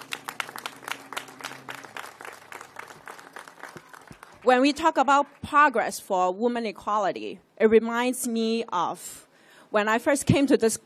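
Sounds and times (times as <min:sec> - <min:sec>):
audience applause: 0:00.0 - 0:05.0
speech: 0:04.4 - 0:10.8.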